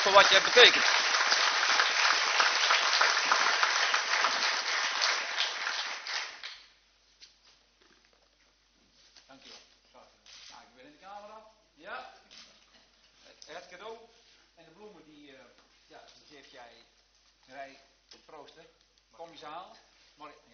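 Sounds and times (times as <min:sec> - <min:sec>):
speech: 0:00.0 - 0:01.1
audience applause: 0:00.0 - 0:06.6.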